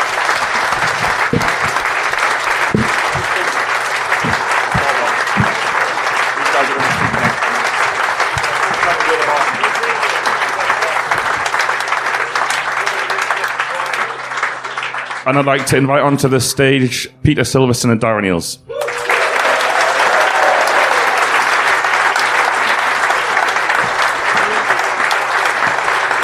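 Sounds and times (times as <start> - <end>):
audience applause: 0.0 - 16.0, 18.7 - 26.2
speech: 15.3 - 18.7.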